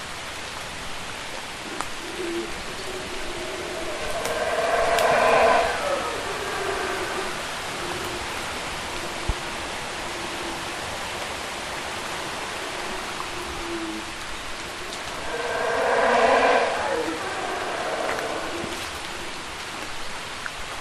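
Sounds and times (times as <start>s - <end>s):
howler monkey howling: 1.6s - 19.6s.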